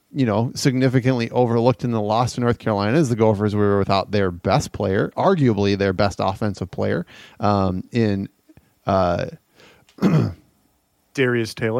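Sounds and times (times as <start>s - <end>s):
speech: 0.2s - 9.4s, 10.0s - 10.4s, 11.2s - 11.7s
person clearing throat: 10.0s - 10.5s.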